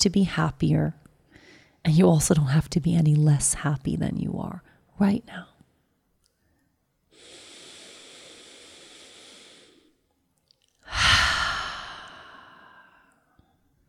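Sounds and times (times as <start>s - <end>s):
speech: 0.0s - 1.0s, 1.8s - 5.5s
long deep breath: 1.3s - 1.8s, 7.1s - 10.0s, 10.8s - 13.6s.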